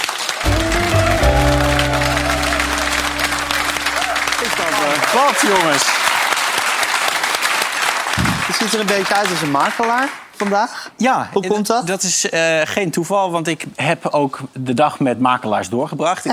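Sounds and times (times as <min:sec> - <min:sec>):
audience applause: 0:00.0 - 0:10.6
speech: 0:05.2 - 0:06.1, 0:08.6 - 0:16.3.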